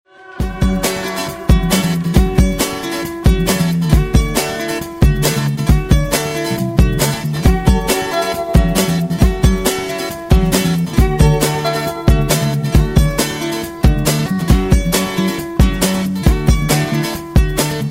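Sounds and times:
fast melody: 0.4s - 17.8s.

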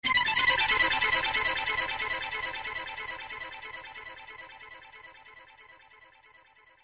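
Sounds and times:
ringtone: 0.0s - 3.2s.

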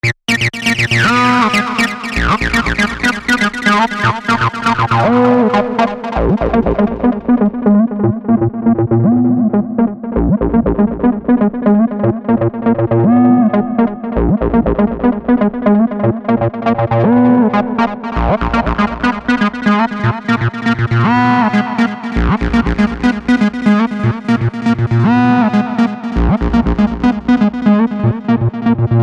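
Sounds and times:
303 acid bass synth: 0.0s - 29.0s.

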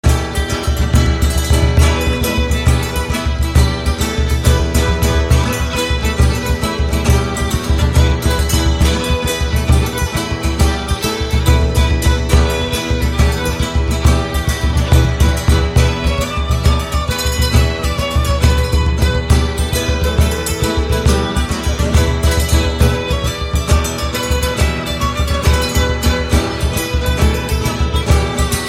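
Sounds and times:
Irish dance music: 0.3s - 28.6s.

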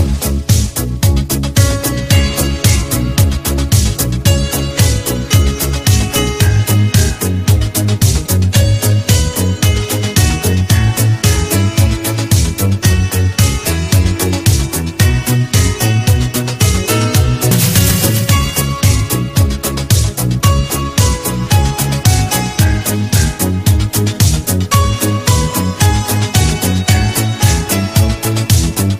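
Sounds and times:
disco song: 0.0s - 28.9s.

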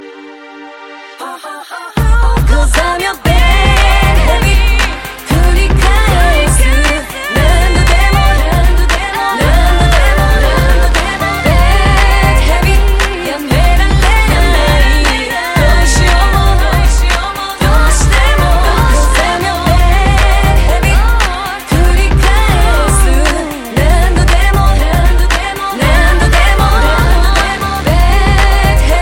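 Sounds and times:
hardstyle music: 0.0s - 29.0s.

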